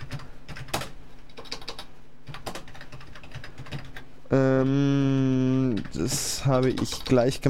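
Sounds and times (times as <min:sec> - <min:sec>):
rapid typing on a computer keyboard: 0:00.0 - 0:04.0, 0:05.7 - 0:07.2
speech: 0:04.3 - 0:07.4.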